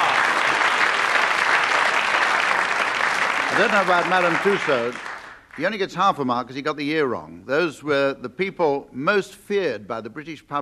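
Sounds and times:
audience applause: 0.0s - 5.7s
speech: 3.6s - 10.5s.

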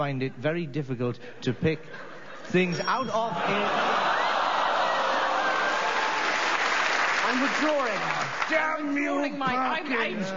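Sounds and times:
speech: 0.0s - 4.1s, 7.3s - 10.3s
laughter: 1.6s - 6.1s
audience round of applause: 3.9s - 9.0s.

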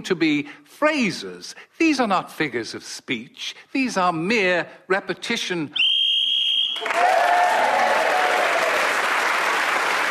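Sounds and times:
speech: 0.0s - 5.9s, 6.8s - 7.4s
game show whistle signaling time up: 5.8s - 7.1s
sustained applause: 6.6s - 10.0s.

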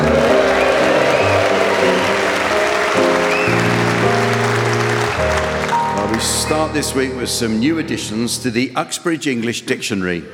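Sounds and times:
studio audience applause welcoming the show's scorer: 0.0s - 6.7s
music playing: 0.0s - 9.0s
speech: 6.7s - 10.3s.

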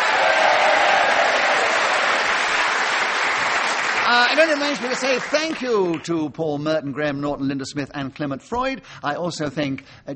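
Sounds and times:
studio audience applause: 0.0s - 6.0s
speech: 4.1s - 10.1s.

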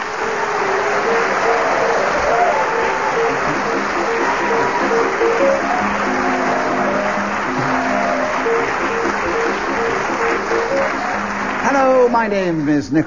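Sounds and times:
audience applause: 0.0s - 13.0s
quick flowing waltz melody, theme music: 2.6s - 12.2s
speech: 12.2s - 13.0s.

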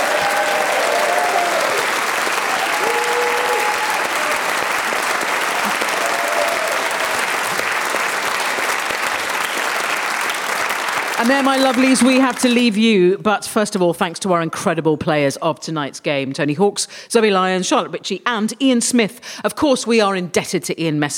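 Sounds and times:
whoops and cheers: 0.0s - 4.8s, 5.5s - 7.6s
audience applause: 0.0s - 12.7s
speech: 11.2s - 21.1s.

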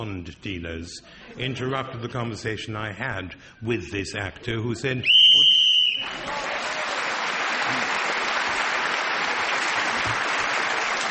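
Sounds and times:
speech: 0.0s - 5.2s
game show shrill whistle blast: 5.0s - 6.2s
steady applause: 5.3s - 11.1s.

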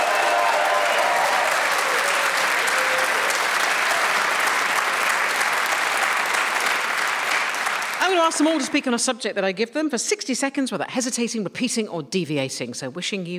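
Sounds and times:
audience whooping and cheering: 0.0s - 7.8s
audience applauding: 0.0s - 8.9s
speech: 8.1s - 13.3s.

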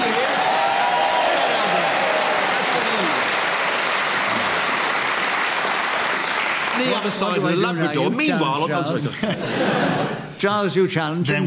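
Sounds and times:
audience round of applause: 0.0s - 7.8s
speech: 6.8s - 11.4s
laughter: 8.6s - 10.4s.

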